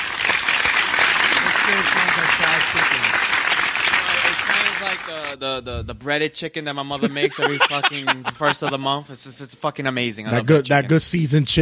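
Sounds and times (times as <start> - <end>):
applause sound effect: 0.0 - 5.4
speech: 1.7 - 3.4, 4.4 - 11.6
laughter: 7.0 - 9.4.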